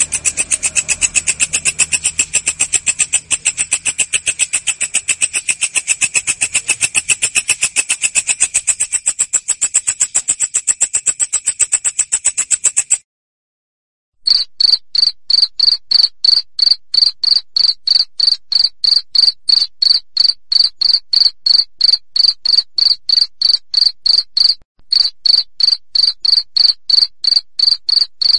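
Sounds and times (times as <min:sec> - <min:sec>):
cricket chirping: 0:00.0 - 0:13.0, 0:14.3 - 0:28.3.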